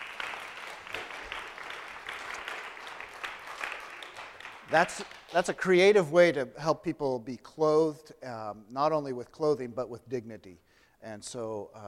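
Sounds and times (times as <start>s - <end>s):
audience clapping: 0.0s - 6.0s
speech: 4.7s - 11.8s.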